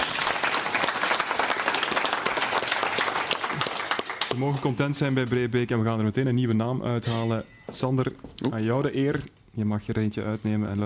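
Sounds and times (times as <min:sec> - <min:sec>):
audience applause: 0:00.0 - 0:04.8
speech: 0:04.4 - 0:10.8.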